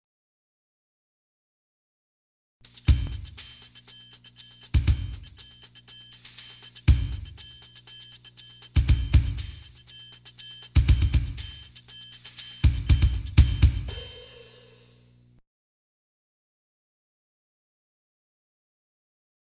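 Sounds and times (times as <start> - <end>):
game show percussion music: 2.6 - 15.0.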